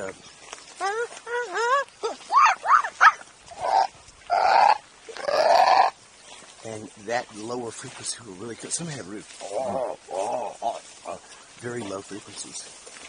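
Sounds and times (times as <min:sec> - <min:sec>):
speech: 0:00.0 - 0:01.1, 0:07.1 - 0:10.2, 0:11.1 - 0:12.9
kookaburra call: 0:00.8 - 0:06.0.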